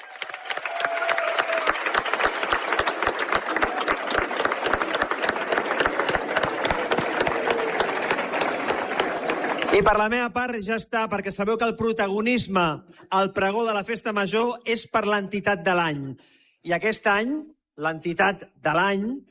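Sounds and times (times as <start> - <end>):
faint cheers: 0.0 - 9.7
large audience applause: 0.0 - 10.0
speech: 9.8 - 19.2.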